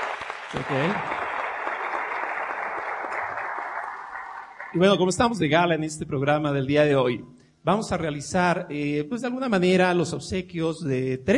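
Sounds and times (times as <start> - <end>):
audience applause: 0.0 - 4.9
speech: 0.5 - 1.2, 4.7 - 11.3.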